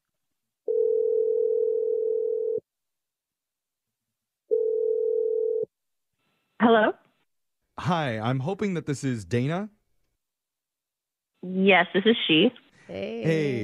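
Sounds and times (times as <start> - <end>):
long steady telephone ringing tones: 0.7 - 2.6, 4.5 - 5.7
speech: 7.9 - 9.8, 11.6 - 13.6.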